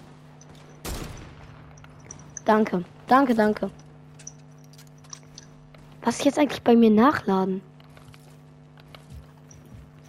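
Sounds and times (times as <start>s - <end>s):
sniper rifle shot in a video game: 0.8s - 1.6s
speech: 2.5s - 3.8s, 6.1s - 7.7s.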